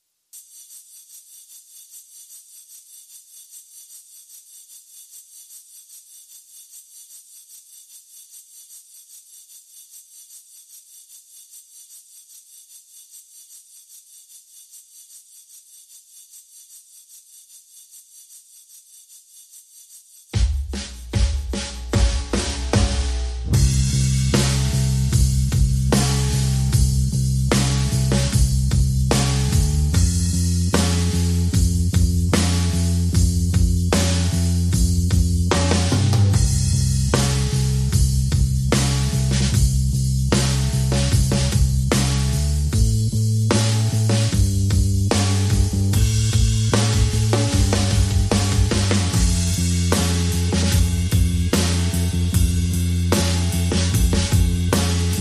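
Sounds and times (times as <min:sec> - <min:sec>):
drum and bass mix: 0:20.4 - 0:55.1.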